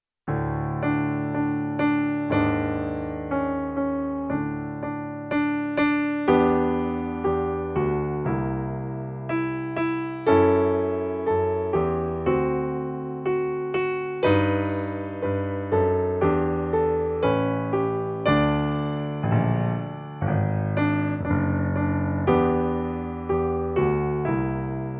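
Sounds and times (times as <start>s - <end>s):
piano piece: 0.3s - 24.9s.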